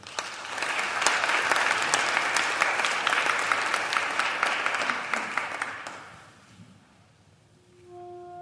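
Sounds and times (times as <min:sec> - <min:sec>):
audience applause welcoming a speaker: 0:00.0 - 0:06.3.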